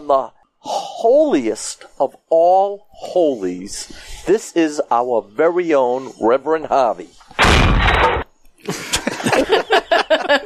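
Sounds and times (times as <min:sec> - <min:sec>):
speech: 0:00.1 - 0:08.8
church altar falling over with a crash: 0:07.4 - 0:08.3
laughter: 0:08.6 - 0:10.4.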